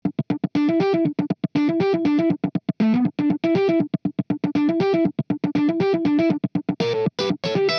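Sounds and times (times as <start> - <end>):
amplified funk guitar: 0.0 - 7.7.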